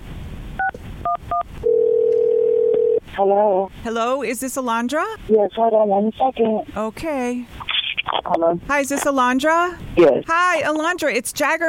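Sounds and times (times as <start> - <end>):
steady telephone line tone: 0.6 - 3.0
speech: 3.2 - 11.6.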